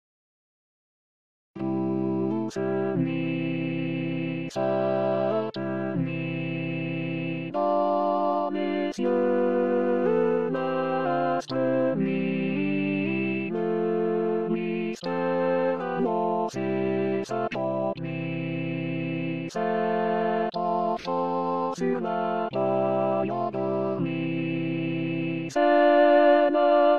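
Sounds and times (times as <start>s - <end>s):
Christmas carol: 1.6s - 26.9s.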